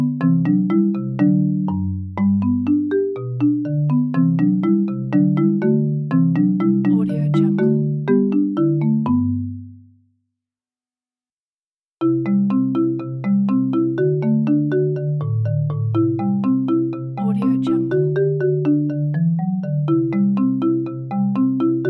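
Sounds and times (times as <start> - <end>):
marimba: 0.0 - 9.8, 12.0 - 21.8.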